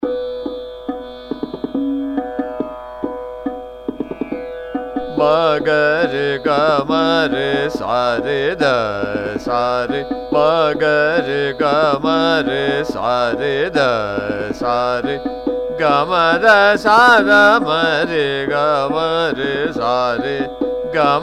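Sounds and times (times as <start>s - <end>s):
sargam singing in fast ektaal: 0.3s - 21.2s.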